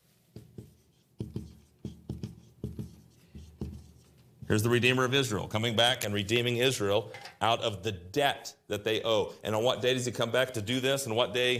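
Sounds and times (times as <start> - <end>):
scratchy drawing strokes on a board: 0.2 - 4.6
speech: 4.5 - 11.5.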